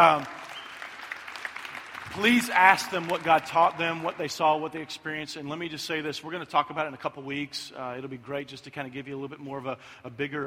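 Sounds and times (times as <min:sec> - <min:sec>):
speech: 0:00.0 - 0:00.4, 0:02.2 - 0:10.4
audience clapping: 0:00.0 - 0:04.6.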